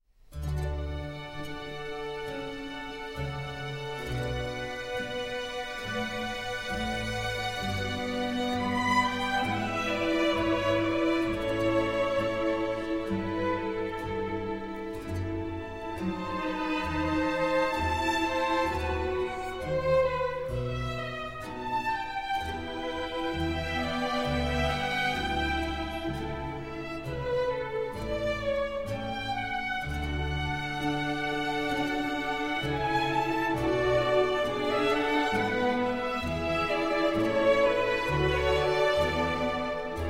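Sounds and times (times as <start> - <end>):
orchestral music: 0.4 - 40.0.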